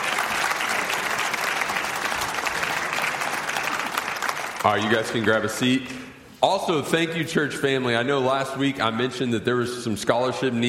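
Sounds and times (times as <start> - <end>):
audience applause: 0.0 - 5.5
speech: 4.6 - 10.6.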